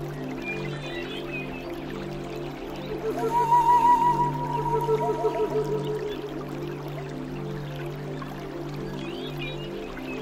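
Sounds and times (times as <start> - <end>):
gentle watery rainforest wash: 0.0 - 10.2
soft flute: 2.7 - 7.7
low hum of sustained tones: 2.9 - 7.5.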